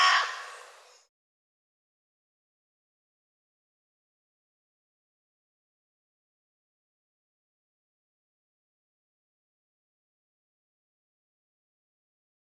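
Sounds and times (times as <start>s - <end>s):
bird giving harsh grating caws: 0.0s - 1.0s.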